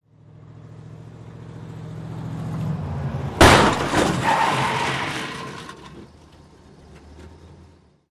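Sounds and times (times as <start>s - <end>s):
moving vehicle colliding with a stationary vehicle: 3.4s - 6.4s.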